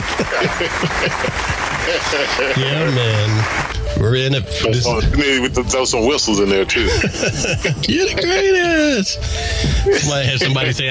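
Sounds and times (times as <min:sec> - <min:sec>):
laughter: 0:00.0 - 0:03.7, 0:06.4 - 0:10.8
crowd applause: 0:00.0 - 0:03.8
speech: 0:00.2 - 0:10.8.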